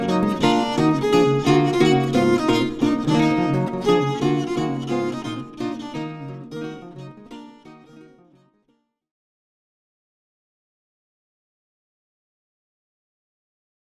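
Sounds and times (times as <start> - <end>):
classical gavotte: 0.0 - 8.4.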